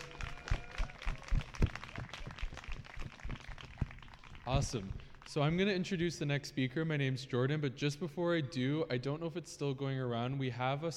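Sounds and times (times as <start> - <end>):
audience applause: 0.0 - 5.4
speech: 4.5 - 10.9.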